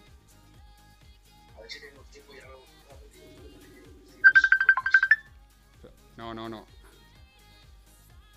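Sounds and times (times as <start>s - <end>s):
phone ringtone from an incoming call: 4.2s - 5.3s
speech: 6.2s - 6.8s.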